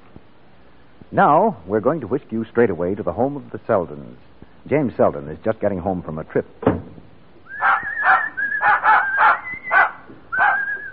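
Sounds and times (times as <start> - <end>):
speech: 1.1 - 6.8
dog barking excitedly: 7.6 - 10.7.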